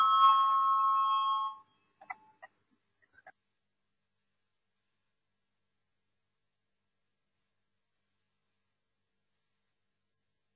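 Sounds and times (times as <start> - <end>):
electric bell ringing to call a parliamentary vote: 0.0 - 1.7.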